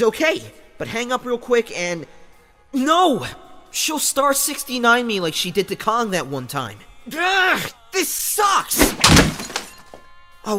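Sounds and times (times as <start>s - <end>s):
speech: 0.0s - 9.2s
phone breaking: 8.8s - 10.0s.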